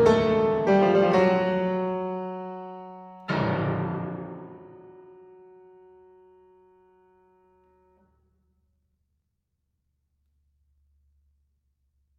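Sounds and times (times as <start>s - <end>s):
piano music: 0.0s - 5.9s
drums: 3.3s - 4.6s.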